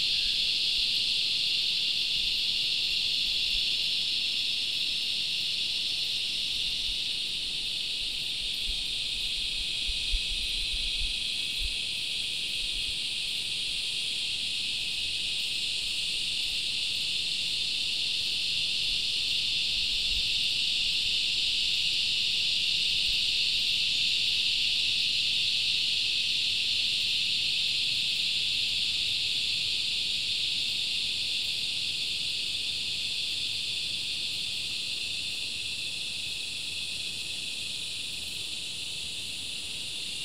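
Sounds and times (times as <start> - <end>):
cicadas buzzing: 0.0 - 40.2.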